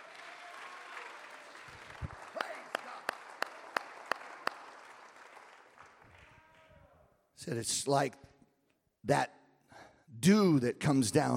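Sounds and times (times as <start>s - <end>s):
audience clapping in unison: 0.0s - 6.7s
speech: 7.4s - 8.3s, 9.0s - 9.4s, 10.2s - 11.3s.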